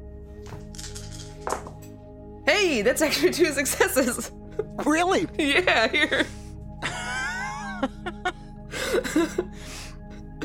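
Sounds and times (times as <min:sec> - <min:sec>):
three dice rattling across a hard surface: 0:00.5 - 0:01.8
speech: 0:02.6 - 0:06.4, 0:09.0 - 0:09.9
laughter: 0:03.0 - 0:09.6.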